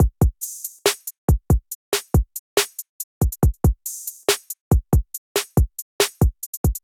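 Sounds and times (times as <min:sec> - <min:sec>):
drum kit: 0:00.0 - 0:06.8.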